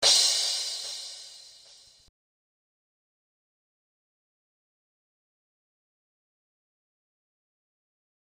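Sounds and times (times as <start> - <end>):
crash cymbal: 0.0 - 2.1.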